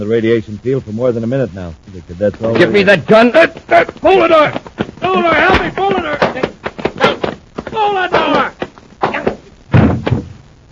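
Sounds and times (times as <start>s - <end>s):
speech: 0.0s - 7.2s, 7.8s - 8.5s
punches landing in a fistfight including a left hook: 2.4s - 10.6s.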